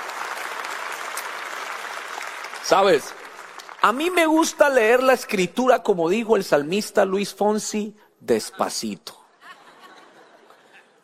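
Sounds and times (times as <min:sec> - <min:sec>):
audience applause: 0:00.0 - 0:05.4
speech: 0:02.7 - 0:03.2, 0:03.8 - 0:09.2
laughter: 0:09.3 - 0:11.0.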